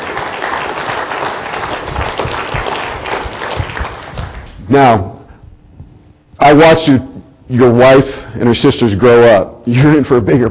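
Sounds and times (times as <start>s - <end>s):
audience clapping: 0.0s - 4.7s
speech: 4.7s - 5.1s, 6.4s - 10.5s.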